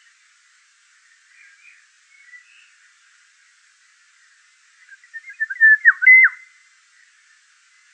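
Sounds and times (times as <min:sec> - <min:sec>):
Eurasian golden oriole fluty yodelling whistled song at Wiesloch: 0:01.3 - 0:02.8, 0:04.8 - 0:06.6.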